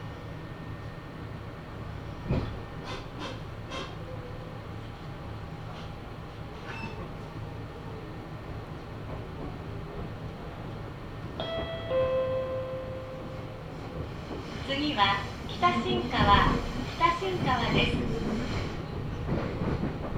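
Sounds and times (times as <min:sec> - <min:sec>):
Meitetsu Mikawa Line train carriage rumble: 0:00.0 - 0:20.1
brief tonal whine: 0:11.4 - 0:14.0.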